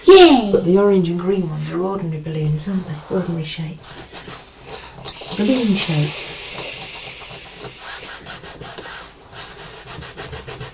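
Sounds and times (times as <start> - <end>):
speech: 0.1 - 4.4, 5.0 - 6.3
scrubbing a table surface: 2.7 - 10.7.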